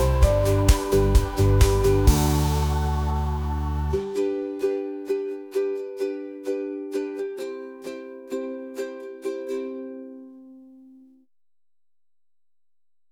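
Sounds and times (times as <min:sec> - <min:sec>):
tropical beats: 0:00.0 - 0:06.1.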